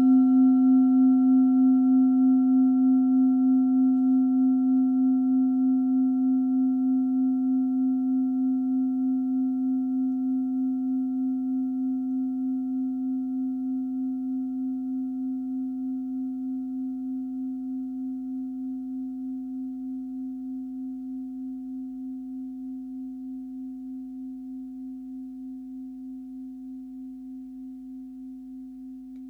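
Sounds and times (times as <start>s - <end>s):
Tibetan singing bowl: 0.0s - 29.2s.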